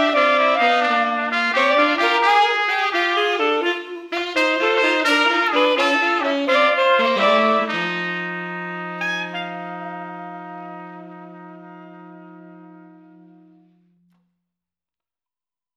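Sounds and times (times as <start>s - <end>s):
street brass band playing slow blues: 0.0s - 13.4s.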